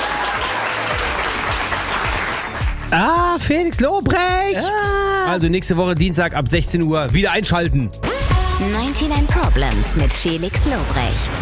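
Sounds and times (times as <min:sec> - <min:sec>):
audience applauding: 0:00.0 - 0:03.4
speech: 0:02.9 - 0:11.4.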